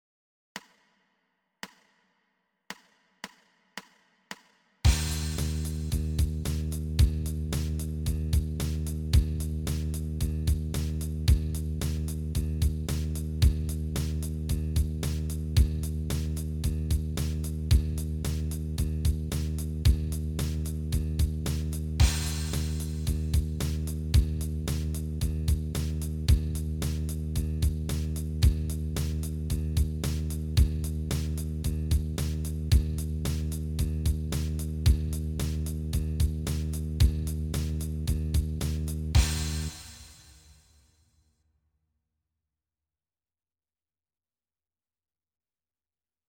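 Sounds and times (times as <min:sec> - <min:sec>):
bass startup sound: 0:04.9 - 0:40.2.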